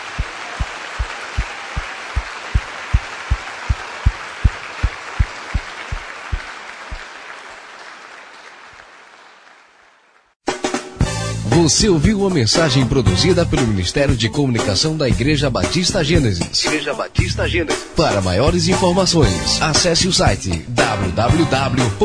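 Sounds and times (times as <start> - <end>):
audience applause: 0.0 - 10.3
speech: 11.6 - 22.0.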